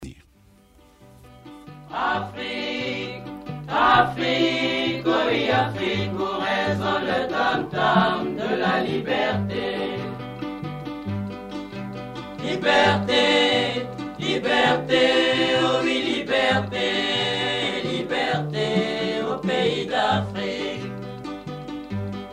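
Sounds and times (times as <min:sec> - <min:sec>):
chanting: 0:01.9 - 0:10.3, 0:12.4 - 0:21.1.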